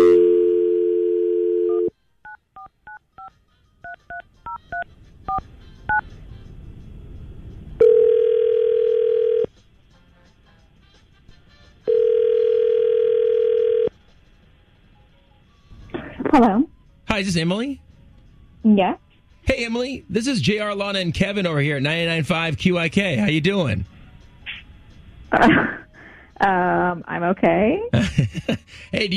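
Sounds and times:
telephone dial tone: 0.0s - 3.3s, 7.8s - 9.5s, 11.8s - 13.9s
phone ringing tones: 0.0s - 6.0s, 7.8s - 9.5s, 11.8s - 13.9s
speech: 17.2s - 17.8s, 18.6s - 23.9s, 25.3s - 25.8s, 26.4s - 29.1s
laughter: 28.0s - 29.1s.

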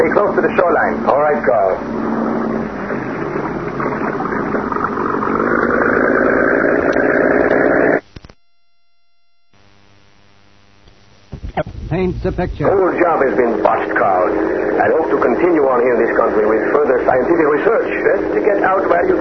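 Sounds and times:
cabin cruiser boat engine running: 0.0s - 8.0s, 12.0s - 19.1s
faint rumbling: 0.0s - 19.1s
speech: 0.3s - 2.1s, 12.0s - 19.1s.

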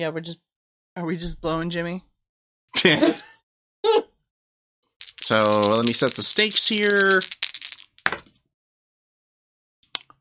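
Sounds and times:
speech: 0.0s - 2.1s, 2.7s - 4.0s, 5.3s - 7.4s
laughter: 2.8s - 3.4s
dice clattering across a hard surface: 5.0s - 8.3s.

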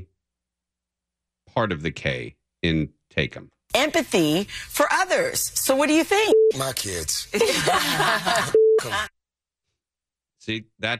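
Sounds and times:
speech: 1.5s - 9.1s, 10.4s - 10.9s
censor bleep: 6.3s - 6.6s, 8.6s - 8.9s
laughter: 7.3s - 9.1s.

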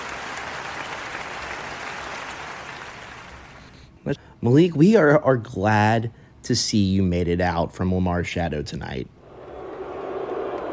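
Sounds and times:
audience applause: 0.0s - 3.7s, 9.4s - 10.7s
speech: 4.1s - 9.2s.

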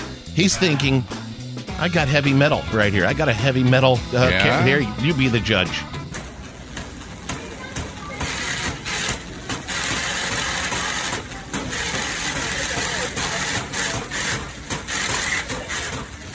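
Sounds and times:
speech: 0.4s - 1.2s, 1.8s - 5.9s
shopping cart with a bum wheel pushed down a store aisle: 6.2s - 16.3s.

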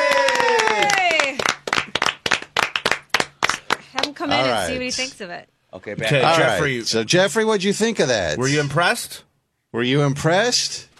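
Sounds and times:
group clapping: 0.0s - 4.6s
speech: 4.2s - 10.9s.

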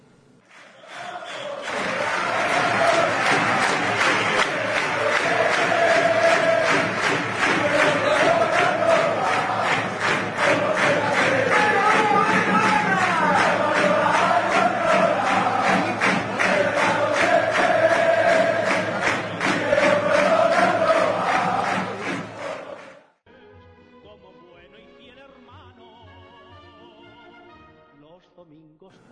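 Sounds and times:
football crowd chanting a song in unison: 0.6s - 23.2s.

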